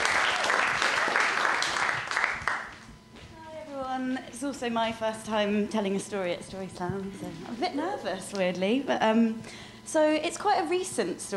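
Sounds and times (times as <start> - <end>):
round of applause: 0.0 - 2.8
speech: 4.5 - 11.3.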